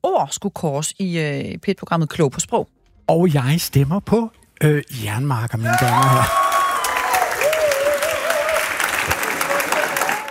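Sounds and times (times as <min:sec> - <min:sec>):
speech: 0:00.0 - 0:06.4
audience cheering: 0:05.7 - 0:10.3.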